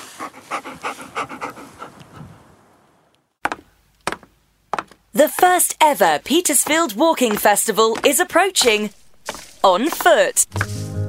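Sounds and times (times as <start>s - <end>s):
dog panting: 0.0s - 2.4s
speech: 5.2s - 9.0s, 9.6s - 10.8s.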